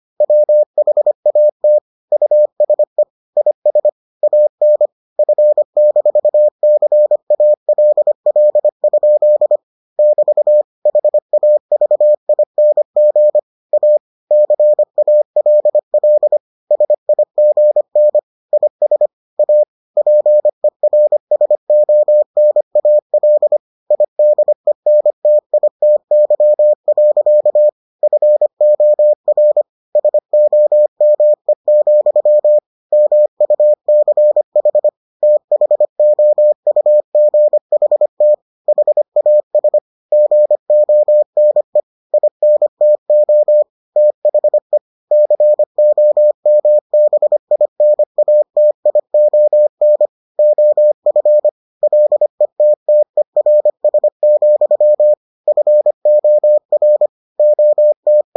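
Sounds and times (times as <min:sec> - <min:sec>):
morse code beeps: 0:00.2 - 0:58.3.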